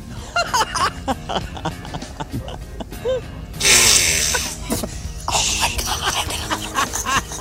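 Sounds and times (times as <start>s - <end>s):
laughter: 0.0s - 7.3s
loud hissing fart: 0.8s - 7.3s
speech: 1.3s - 1.6s
faint vocal noises: 2.1s - 7.1s.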